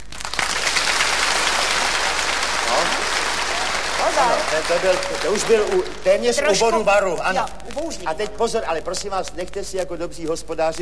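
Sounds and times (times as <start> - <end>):
comedy show audience applause: 0.0 - 7.0
speech: 4.2 - 10.8.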